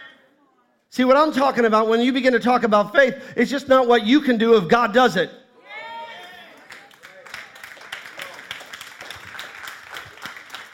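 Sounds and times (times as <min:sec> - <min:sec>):
speech: 0:01.0 - 0:05.4
sparse audience applause: 0:06.1 - 0:10.7.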